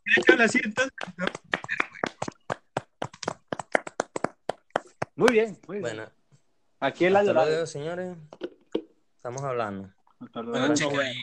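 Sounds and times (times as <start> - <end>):
speech: 0.4 - 1.4, 5.2 - 6.2, 6.8 - 8.4, 9.2 - 11.2
applause: 0.9 - 5.2.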